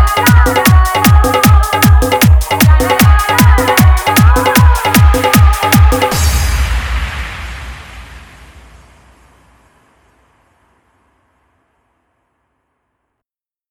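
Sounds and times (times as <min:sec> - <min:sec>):
dholak bass dance mix: 0:00.0 - 0:07.4.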